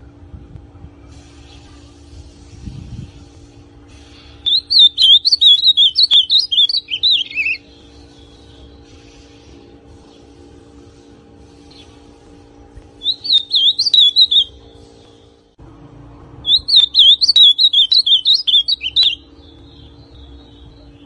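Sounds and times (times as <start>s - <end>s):
ultramarine grosbeak song: 4.1s - 9.3s, 13.0s - 15.4s, 16.4s - 21.0s.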